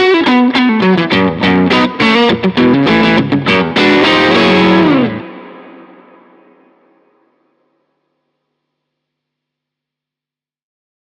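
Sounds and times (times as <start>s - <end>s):
blues music: 0.0s - 6.8s.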